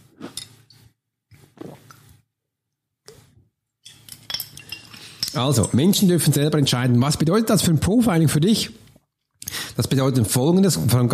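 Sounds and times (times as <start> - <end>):
sipping water from a glass: 0.0 - 2.3
speech: 5.4 - 8.8, 9.8 - 11.1.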